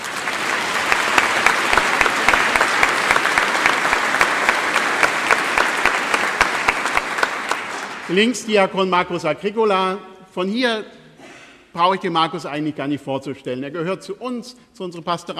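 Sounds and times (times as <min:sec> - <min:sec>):
audience clapping: 0:00.0 - 0:08.6
speech: 0:08.1 - 0:11.0, 0:11.7 - 0:15.3.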